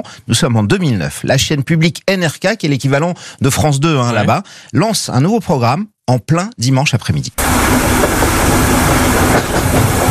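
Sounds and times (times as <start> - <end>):
speech: 0.0 - 9.8
train leaving Oslo station bound for Bergen rumbling: 7.4 - 10.0.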